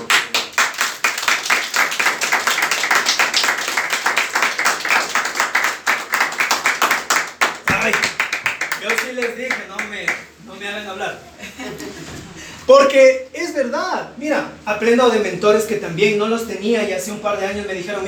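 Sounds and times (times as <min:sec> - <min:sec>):
crowd clapping: 0:00.0 - 0:10.3
speech: 0:09.2 - 0:18.0.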